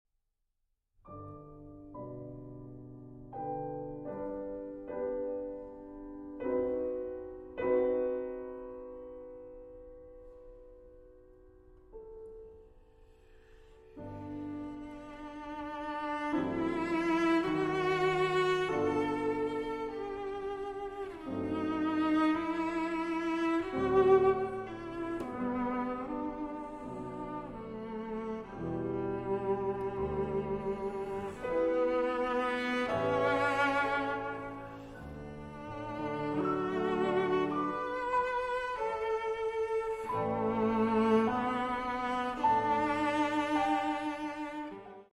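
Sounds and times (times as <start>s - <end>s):
slow cello and piano piece: 1.1s - 45.1s.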